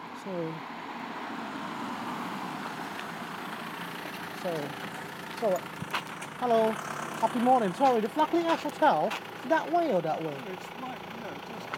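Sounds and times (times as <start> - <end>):
car on the road engine and tyre noise: 0.0 - 11.7
speech: 0.2 - 0.8, 4.4 - 10.8.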